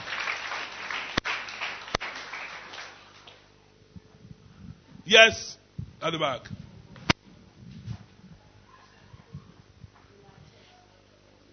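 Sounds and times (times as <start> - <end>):
audience clapping: 0.0 - 3.5
speech: 5.1 - 6.6.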